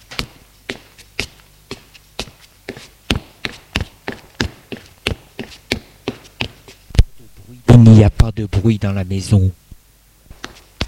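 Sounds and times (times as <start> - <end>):
faint hum: 0.0 - 10.8
footsteps climbing stairs: 0.1 - 6.8, 10.3 - 10.8
speech: 7.8 - 9.6.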